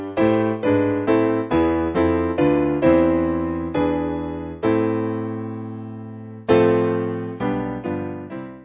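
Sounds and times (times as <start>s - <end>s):
piano backing: 0.0s - 8.6s.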